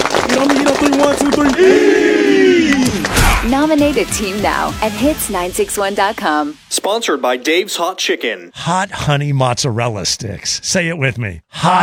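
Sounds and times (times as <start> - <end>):
football team clapping in unison: 0.0 - 3.1
speech: 0.4 - 11.8
voices shouting: 1.4 - 3.2
loud group yell: 1.4 - 3.4.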